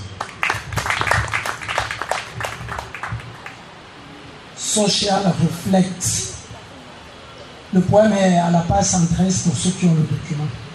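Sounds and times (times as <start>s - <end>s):
audience applause: 0.2s - 3.7s
speech: 4.8s - 6.3s, 7.7s - 10.6s.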